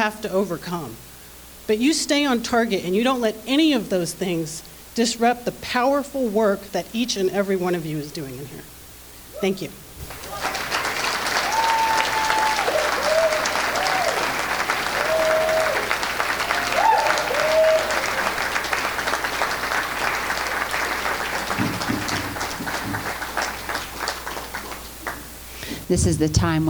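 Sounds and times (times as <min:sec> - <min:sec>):
speech: 0:00.0 - 0:01.1, 0:01.7 - 0:08.8, 0:09.4 - 0:10.4, 0:25.9 - 0:26.6
audience applause: 0:10.0 - 0:25.3.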